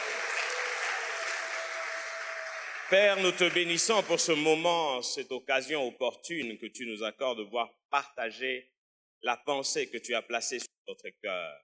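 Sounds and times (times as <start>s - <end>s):
church congregation clapping during a sermon: 0.0s - 4.9s
speech: 2.9s - 11.6s.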